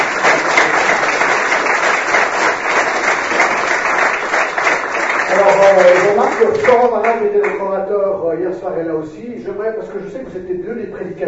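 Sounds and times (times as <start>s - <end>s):
audience applause: 0.0s - 7.6s
speech: 5.7s - 11.2s.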